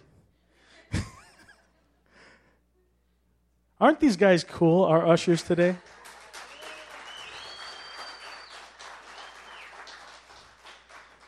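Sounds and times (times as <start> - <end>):
speech: 3.8 - 5.9
crowd applause: 5.6 - 11.2
faint whistles: 6.4 - 10.0.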